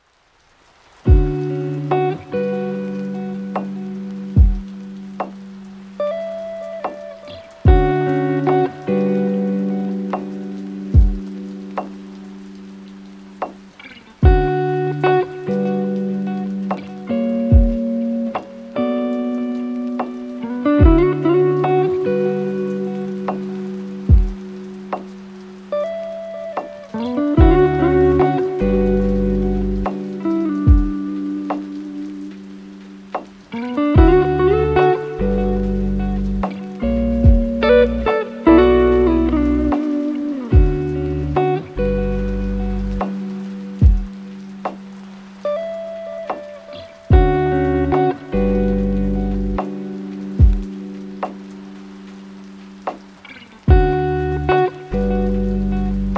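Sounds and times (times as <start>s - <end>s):
lofi chill beats: 1.0s - 56.1s.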